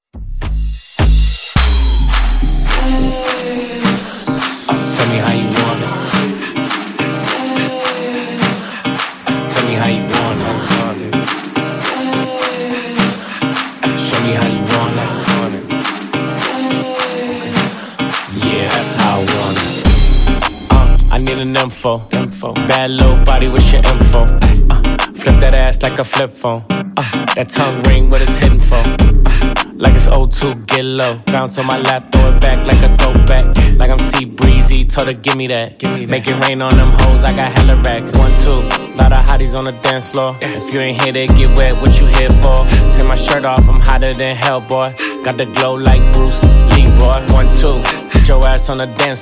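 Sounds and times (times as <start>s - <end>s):
funk intro and outro music at 105 BPM: 0.4s - 49.2s.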